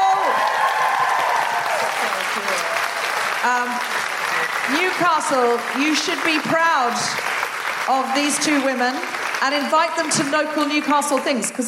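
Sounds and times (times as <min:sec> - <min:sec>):
crowd cheering and whooping: 0:00.0 - 0:05.6
crowd applauding: 0:00.0 - 0:11.6
speech: 0:03.4 - 0:03.9, 0:04.7 - 0:07.3, 0:07.9 - 0:11.6.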